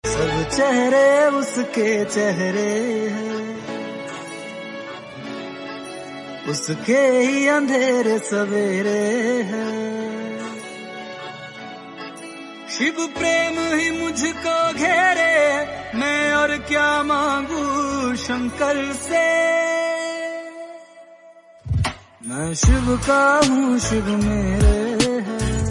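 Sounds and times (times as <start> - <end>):
Bhakti devotional song: 0.0 - 25.6.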